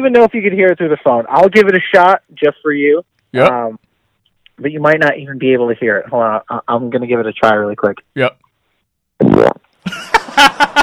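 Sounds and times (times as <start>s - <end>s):
speech: 0.0s - 3.8s, 4.6s - 8.4s, 9.4s - 10.0s
fart noise: 9.2s - 9.8s.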